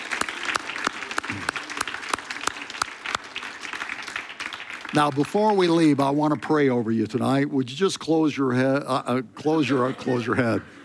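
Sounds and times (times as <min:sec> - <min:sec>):
audience clapping in a steady rhythm: 0:00.0 - 0:05.8
scattered applause: 0:00.0 - 0:05.9
speech: 0:04.9 - 0:10.8.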